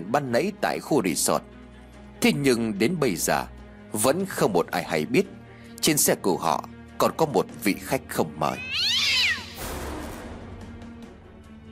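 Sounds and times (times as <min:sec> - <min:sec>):
speech: 0:00.1 - 0:01.6, 0:02.2 - 0:09.2
cat meowing inside a car: 0:08.6 - 0:09.6.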